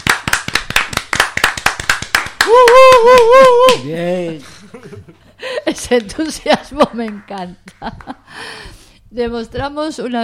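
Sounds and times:
applause: 0.0 - 3.8
speech: 2.5 - 10.2.

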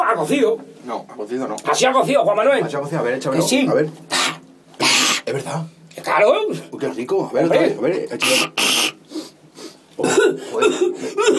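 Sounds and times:
speech: 0.2 - 4.4, 5.3 - 8.8, 10.0 - 11.3
person choking and coughing on swallowed chickpea: 4.1 - 5.2, 8.2 - 9.0, 10.0 - 11.3.

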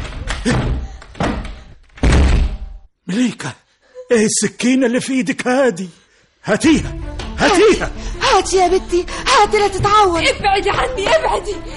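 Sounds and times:
door being forced and broken down in a drama scene: 0.0 - 2.8
speech: 0.4 - 0.7, 3.4 - 11.7.

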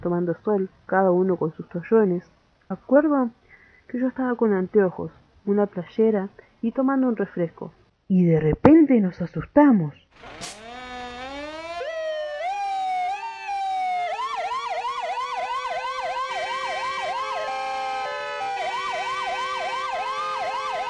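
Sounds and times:
speech: 0.0 - 10.6
emergency vehicle sirens wailing by a beach during a fire: 10.2 - 20.8.

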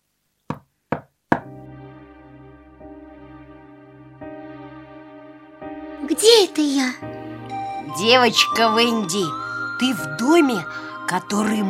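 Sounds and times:
knocking on a door: 0.5 - 1.5
speech: 6.1 - 7.2, 7.9 - 11.6.

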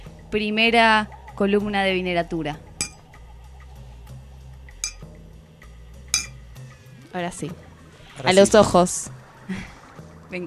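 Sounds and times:
speech: 0.3 - 2.7, 7.1 - 7.6, 8.2 - 9.7
finely carved crystal wine glasses clinking in a toast with wine: 4.8 - 5.0, 6.2 - 6.4
low steady hum: 4.8 - 5.0.

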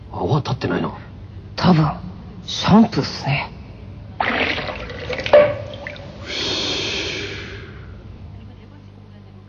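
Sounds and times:
speech: 0.2 - 1.0, 1.6 - 3.6
bathwater sloshing and splashing: 4.2 - 6.3
water drip: 4.3 - 6.2.

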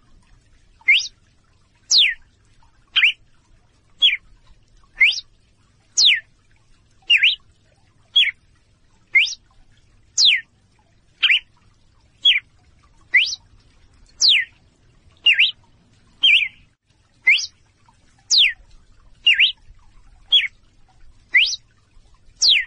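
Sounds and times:
female red-cowled cardinal calling in clear short whistles: 0.9 - 1.1, 1.9 - 2.1, 2.9 - 3.1, 5.0 - 5.2, 6.0 - 6.2, 7.1 - 7.4, 9.1 - 9.4, 10.2 - 10.4, 11.2 - 11.5, 13.1 - 13.4, 14.2 - 14.5, 15.3 - 15.5, 16.2 - 16.6, 17.3 - 17.5, 18.3 - 18.5, 19.3 - 19.5, 21.3 - 21.6, 22.4 - 22.6.

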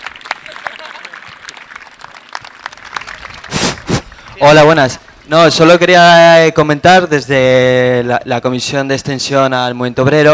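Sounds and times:
crowd clapping: 0.0 - 5.8
speech: 4.4 - 10.3.

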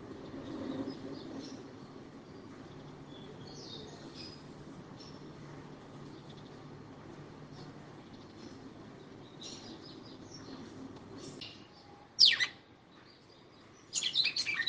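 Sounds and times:
female red-cowled cardinal singing sharp high chirps and twitters: 0.2 - 5.3, 7.5 - 14.6.

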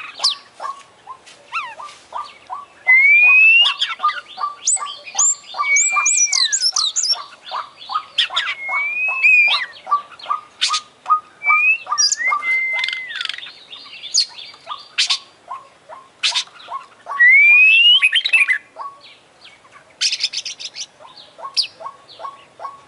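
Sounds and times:
Oriental magpie-robin singing clear whistles, high chips and buzzy slurs: 2.8 - 7.2, 8.2 - 9.8, 10.6 - 13.5, 17.1 - 18.6.

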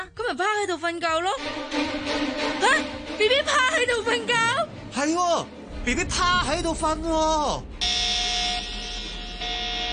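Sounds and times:
speech: 0.3 - 7.9
electronic robot alarm: 7.8 - 9.9.

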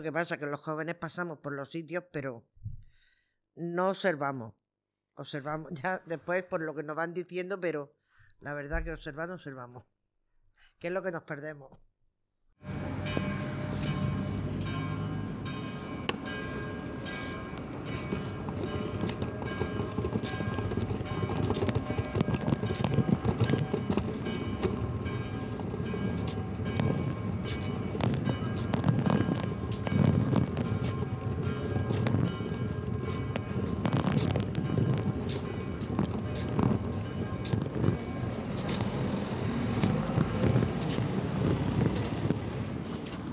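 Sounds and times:
speech: 0.0 - 2.8, 3.6 - 4.6, 5.2 - 9.9, 10.8 - 11.9
low rumble of engines at the Murcia bus station: 12.6 - 43.3
clattering knocks and thumps at the Murcia bus station: 12.7 - 42.6.

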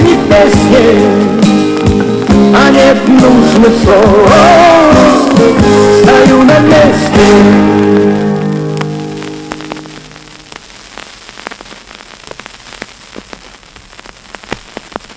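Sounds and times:
music: 0.0 - 10.5
vinyl record surface crackle with clicks and pops over soft hiss: 0.0 - 15.1
speech: 0.4 - 1.4, 2.5 - 7.8.

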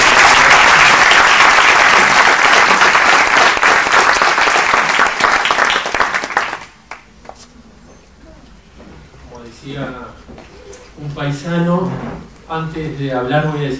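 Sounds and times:
crowd applauding: 0.0 - 7.1
speech: 12.6 - 13.7.

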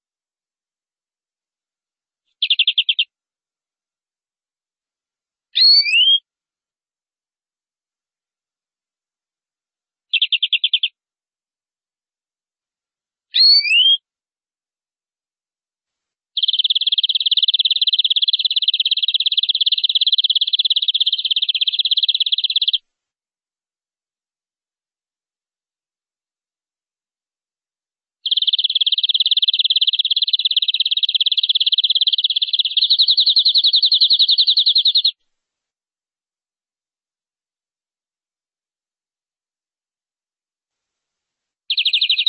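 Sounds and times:
canary trill song: 2.4 - 3.1, 5.6 - 6.2, 10.1 - 10.9, 13.3 - 14.0, 16.4 - 22.8, 28.2 - 35.2, 41.7 - 42.2.

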